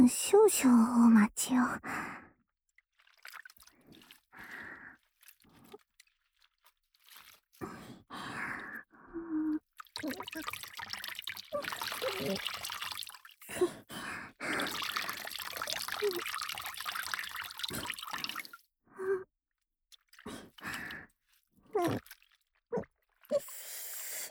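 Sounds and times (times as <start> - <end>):
speech: 0.0 - 2.2, 10.0 - 10.7, 11.5 - 12.6
water trickling from a wet oshibori hand towel being wrung out: 3.0 - 7.8, 9.5 - 13.6, 14.4 - 18.6, 19.9 - 24.2.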